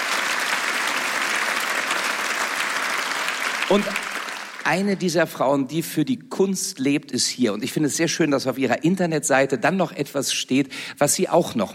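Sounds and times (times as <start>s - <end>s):
audience applause: 0.0s - 4.9s
speech: 3.7s - 4.1s, 4.7s - 11.7s.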